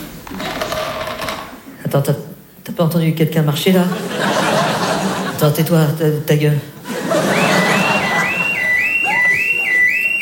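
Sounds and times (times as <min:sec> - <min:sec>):
speech: 0:01.9 - 0:04.6, 0:05.4 - 0:06.8
laughter: 0:03.9 - 0:05.5, 0:06.8 - 0:10.2
electronic alarm going off: 0:07.4 - 0:10.2.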